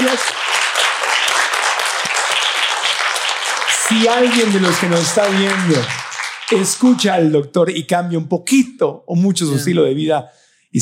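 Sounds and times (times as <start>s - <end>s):
audience applause: 0.0s - 7.3s
speech: 3.9s - 10.8s.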